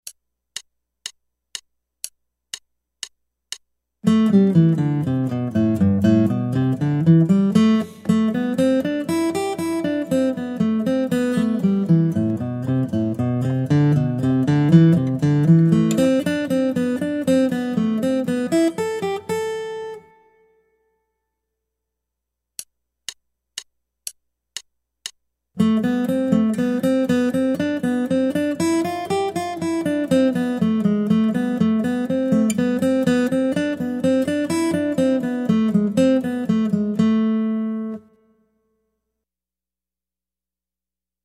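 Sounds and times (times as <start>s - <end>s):
guitar: 4.0s - 21.0s, 25.6s - 38.8s.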